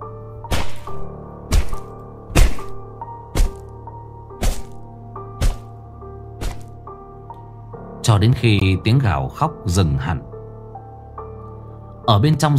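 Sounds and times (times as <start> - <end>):
knife hacking blows: 0.5 - 3.7, 4.4 - 5.8, 6.4 - 6.8
speech: 8.1 - 10.3, 12.1 - 12.5.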